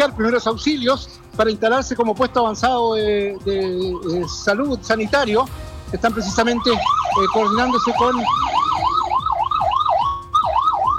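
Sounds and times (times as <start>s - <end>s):
speech: 0.0s - 8.5s
fire brigade vehicle sirens passing at high speed: 2.9s - 10.9s.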